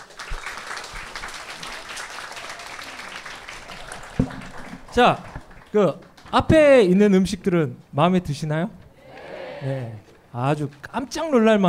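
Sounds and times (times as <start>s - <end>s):
audience applause: 0.0s - 6.3s
speech: 5.0s - 8.8s, 9.6s - 11.6s.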